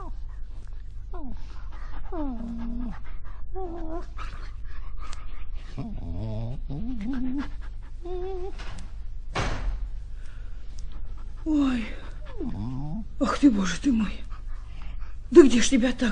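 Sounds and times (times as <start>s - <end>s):
dog with an injured leg whimpering: 0.0s - 0.2s, 1.2s - 4.2s, 5.7s - 8.6s, 11.5s - 13.1s
dog with an injured leg panting: 0.0s - 8.7s, 10.7s - 16.0s
speech: 2.1s - 4.5s, 13.4s - 14.3s, 15.3s - 16.0s.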